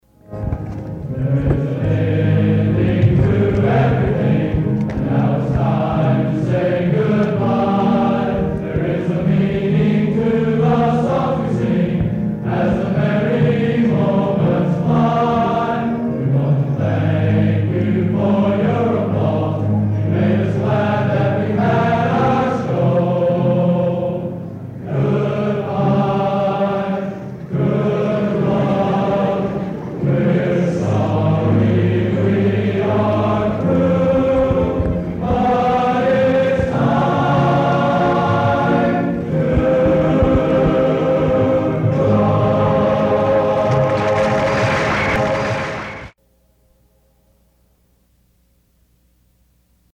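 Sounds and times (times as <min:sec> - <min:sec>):
closing chorus singing: 0:00.2 - 0:46.2.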